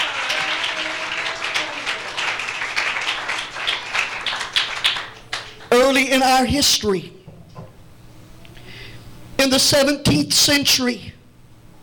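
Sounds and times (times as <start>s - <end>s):
audience clapping hands: 0.0s - 5.8s
speech: 6.0s - 7.2s, 9.4s - 11.1s.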